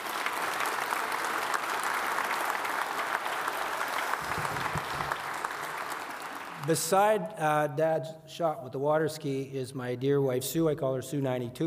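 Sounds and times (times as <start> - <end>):
crowd applause: 0.0 - 6.9
speech: 6.7 - 11.6.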